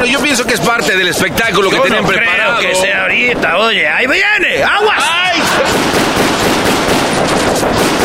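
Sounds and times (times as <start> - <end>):
speech: 0.5 - 6.1
laughter: 4.6 - 6.2
police gunfire: 5.3 - 8.0.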